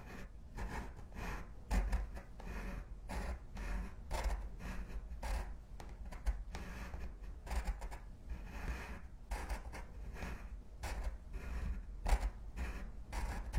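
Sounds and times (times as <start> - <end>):
pencil and pen writing: 0.0 - 13.5.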